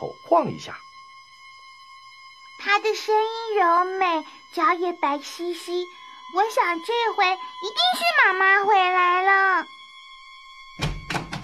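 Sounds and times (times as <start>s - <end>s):
speech: 0.0s - 0.9s, 2.6s - 9.8s
faint steady high-pitched whine: 0.0s - 11.4s
door opening with a dull thunk: 10.8s - 11.4s.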